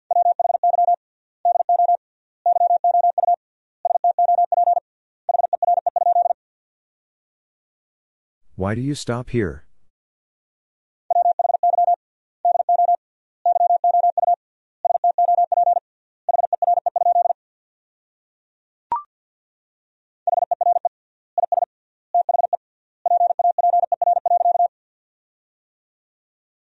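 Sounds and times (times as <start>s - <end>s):
Morse code beeps at about 50 words per minute: 0.1s - 6.4s, 11.1s - 17.4s, 20.3s - 24.7s
speech: 8.6s - 9.7s.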